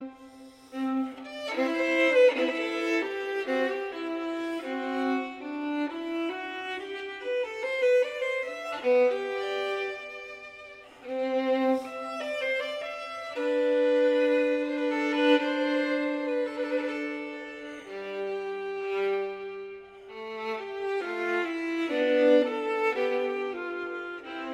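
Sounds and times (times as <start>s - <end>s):
andante from a solo sonata: 0.0s - 24.5s.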